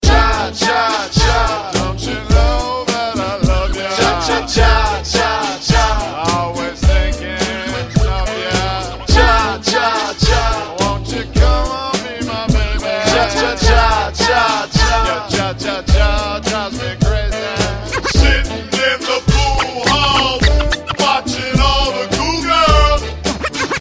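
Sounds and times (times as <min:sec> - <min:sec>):
cha cha cha music: 0:00.0 - 0:23.8.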